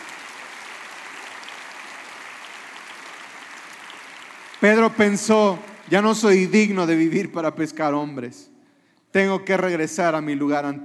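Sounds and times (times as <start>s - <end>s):
audience applauding: 0.0s - 7.0s
speech: 4.6s - 8.5s, 9.1s - 10.8s.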